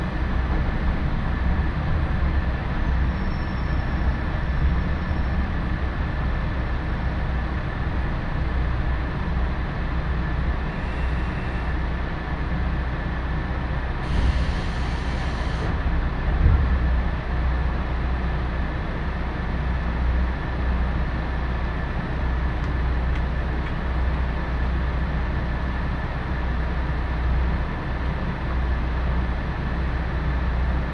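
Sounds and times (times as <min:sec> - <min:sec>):
Nagara Railway Nagara No. 2 train engine and wheels rumble: 0:00.0 - 0:30.9.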